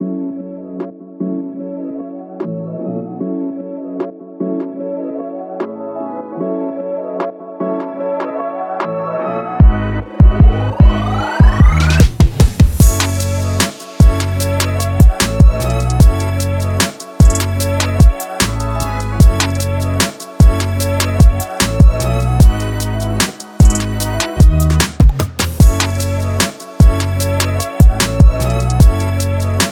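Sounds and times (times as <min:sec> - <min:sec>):
future bass hip hop beat: 0:09.7 - 0:29.7.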